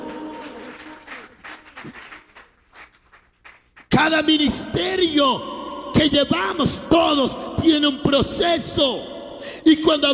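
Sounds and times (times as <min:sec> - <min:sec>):
audience applause: 0:00.0 - 0:03.9
speech: 0:01.8 - 0:02.1, 0:04.0 - 0:10.1.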